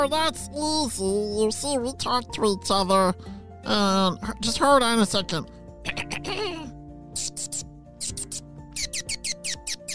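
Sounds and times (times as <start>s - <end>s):
speech: 0.0s - 5.6s
bat chirping: 7.2s - 9.9s.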